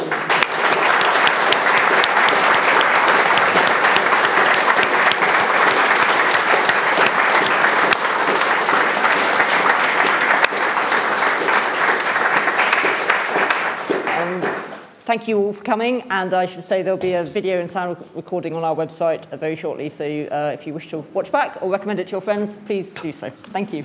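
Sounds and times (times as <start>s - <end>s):
large audience applause: 0.0s - 14.7s
speech: 15.1s - 23.8s.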